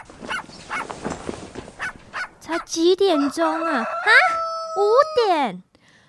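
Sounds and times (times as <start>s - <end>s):
dog barking: 0.0s - 1.0s, 1.8s - 2.7s
speech: 2.5s - 5.7s.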